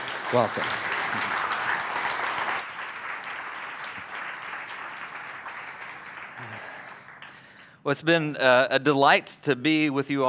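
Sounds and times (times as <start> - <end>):
audience applause at a church service: 0.0 - 7.5
speech: 0.3 - 1.4, 7.9 - 10.2.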